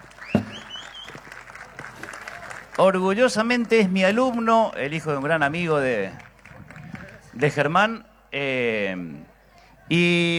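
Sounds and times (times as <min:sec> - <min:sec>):
audience applauding: 0:00.0 - 0:04.5, 0:05.1 - 0:07.3
high whistles: 0:00.2 - 0:01.2
sharp thump: 0:00.4 - 0:00.7
speech: 0:02.8 - 0:06.2, 0:07.4 - 0:09.2, 0:09.9 - 0:10.3.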